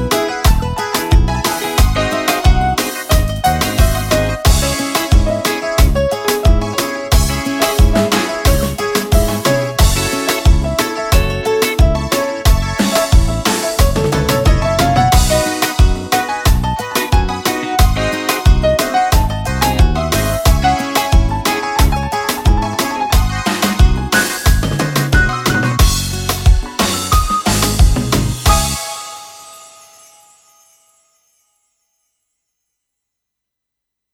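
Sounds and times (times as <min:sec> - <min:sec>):
zouk love music: 0:00.0 - 0:30.8.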